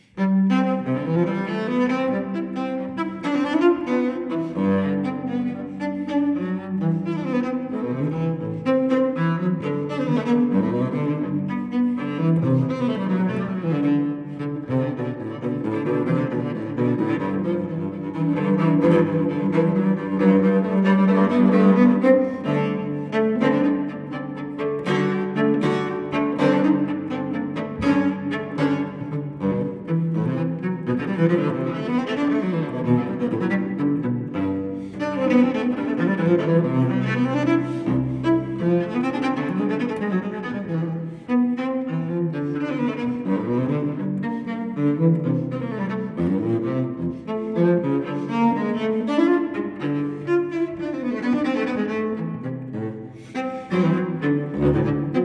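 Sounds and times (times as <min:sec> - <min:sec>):
cello gigue in C major: 0:00.0 - 0:55.2.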